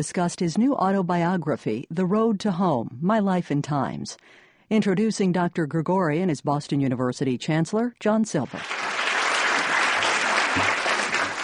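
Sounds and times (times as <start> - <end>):
speech: 0.0 - 8.9
audience applauding in a university auditorium as an author is introduced: 8.5 - 11.4.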